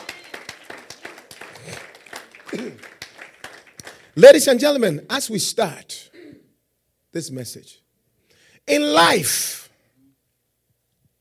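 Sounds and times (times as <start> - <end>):
audience clapping: 0.0 - 4.4
speech: 2.5 - 2.9, 4.2 - 6.0, 7.2 - 7.8, 8.7 - 9.6.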